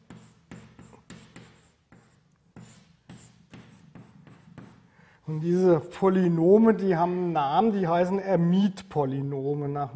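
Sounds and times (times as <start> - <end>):
writing down a mathematical equation in a quantum mechanics lecture: 0.0 - 4.9
speech: 5.3 - 9.9.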